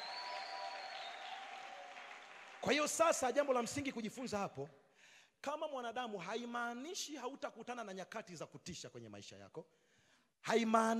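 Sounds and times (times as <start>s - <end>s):
church congregation applauding in praise of Jesus during a sermon: 0.0s - 4.4s
speech: 2.6s - 4.8s, 5.4s - 9.8s, 10.4s - 10.9s.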